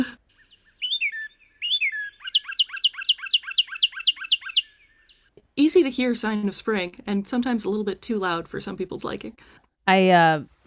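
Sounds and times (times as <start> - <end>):
bird call: 0.3 - 5.3
speech: 5.6 - 10.6.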